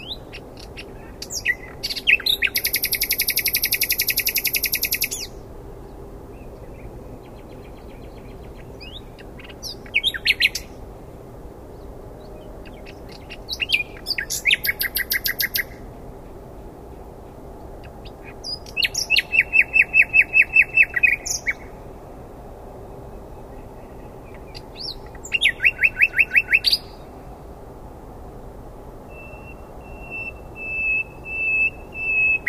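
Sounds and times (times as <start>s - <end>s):
faint hiss: 0.0s - 32.4s
common nightingale singing: 1.3s - 5.3s, 18.7s - 21.6s, 24.8s - 26.9s, 29.1s - 32.4s.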